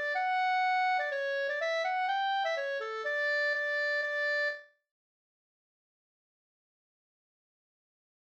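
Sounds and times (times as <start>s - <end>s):
schottis folk dance tune: 0.0s - 4.7s.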